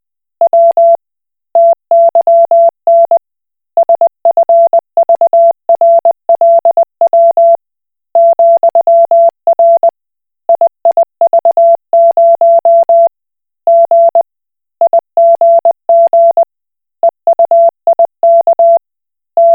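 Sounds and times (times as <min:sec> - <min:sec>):
Koch Morse code beeps: 0:00.5 - 0:01.0, 0:01.6 - 0:03.2, 0:03.8 - 0:07.6, 0:08.2 - 0:09.9, 0:10.5 - 0:13.1, 0:13.7 - 0:14.3, 0:14.9 - 0:16.5, 0:17.3 - 0:18.8, 0:19.4 - 0:19.5.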